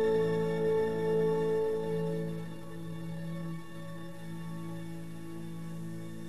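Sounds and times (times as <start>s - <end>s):
viola playing a fantasia: 0.0s - 5.9s.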